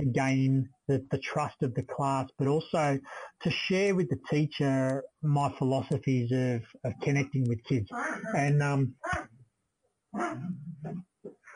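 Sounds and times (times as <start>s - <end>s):
speech: 0.0s - 9.3s, 10.1s - 11.4s
dog yelping while biting itself: 10.2s - 10.4s.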